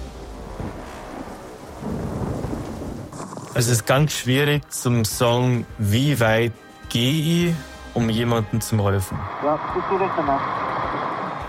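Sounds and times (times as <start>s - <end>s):
heavy rain and hail pelting down: 0.0s - 4.0s
speech: 3.6s - 10.8s.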